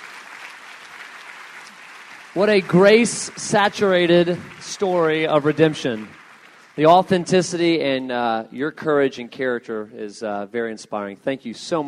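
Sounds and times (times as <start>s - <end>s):
audience applause at a talk: 0.0s - 8.2s
speech: 2.3s - 6.2s, 6.8s - 11.8s.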